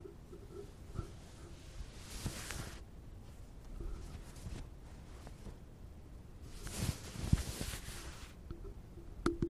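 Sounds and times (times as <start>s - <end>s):
clothes rustling: 0.5s - 5.7s, 6.4s - 8.4s.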